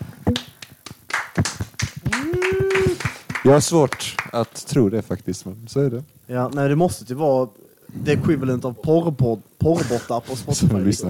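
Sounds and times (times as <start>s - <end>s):
applause, hands clapping: 0.3s - 4.6s
speech: 3.4s - 11.0s.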